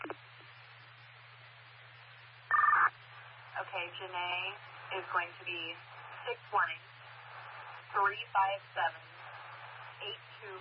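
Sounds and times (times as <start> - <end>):
faint steady low hum: 0.0 - 10.5
telephone tones as a number is dialed: 2.5 - 2.9
speech: 3.7 - 6.9, 7.9 - 9.1, 10.0 - 10.5.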